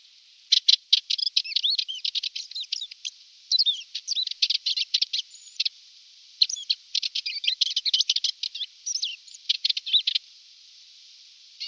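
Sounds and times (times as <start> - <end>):
Atlas warbler singing: 0.5 - 5.7, 6.4 - 10.2.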